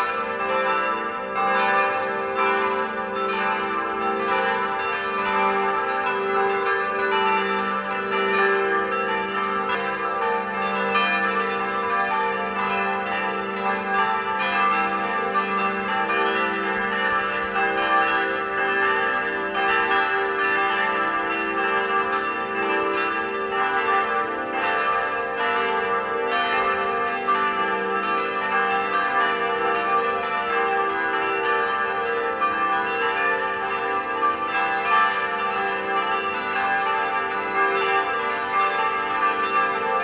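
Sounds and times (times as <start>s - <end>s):
bells ringing: 0.0s - 40.0s.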